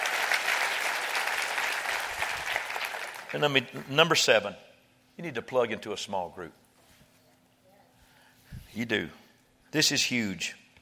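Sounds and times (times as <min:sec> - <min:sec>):
audience clapping hands: 0:00.0 - 0:03.6
speech: 0:03.3 - 0:06.6, 0:08.8 - 0:10.6.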